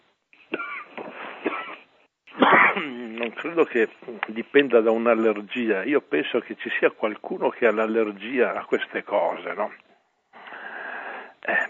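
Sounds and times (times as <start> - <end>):
person coughing: 0.5 - 3.1
speech: 2.8 - 9.8.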